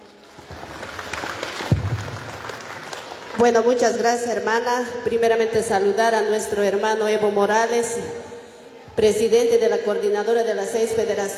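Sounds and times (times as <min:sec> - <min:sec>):
audience applause: 0:00.0 - 0:03.4
speech: 0:03.4 - 0:08.3, 0:09.0 - 0:11.3.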